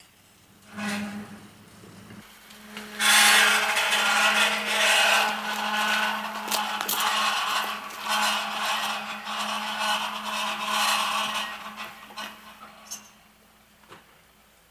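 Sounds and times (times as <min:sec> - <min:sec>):
prison gate opening: 0:02.6 - 0:13.2.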